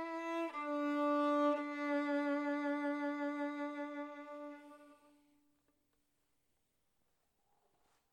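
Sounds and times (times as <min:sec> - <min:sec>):
Maggini violin playing: 0:00.0 - 0:05.2.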